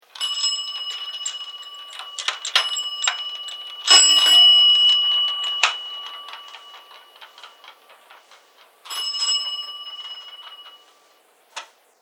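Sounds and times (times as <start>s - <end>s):
bell of a passing bicycle: 0.0s - 11.5s.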